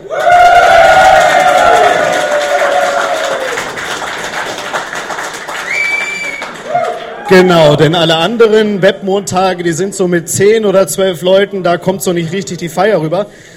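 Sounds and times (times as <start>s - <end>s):
live audience cheering and whooping: 0.0s - 4.6s, 5.2s - 7.4s
speech: 7.3s - 13.5s.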